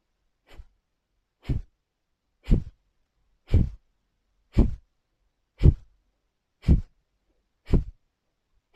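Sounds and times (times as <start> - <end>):
forceful exhalations of Kapalabhati yoga breathing: 0.4 - 0.8, 1.4 - 1.8, 2.4 - 2.8, 3.4 - 3.9, 4.5 - 4.9, 5.6 - 6.0, 6.6 - 7.0, 7.6 - 8.0.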